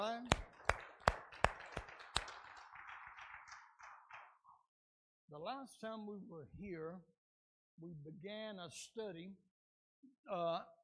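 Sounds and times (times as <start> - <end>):
audience hand clapping: 0.0 - 4.6
speech: 5.4 - 7.2, 7.8 - 10.8.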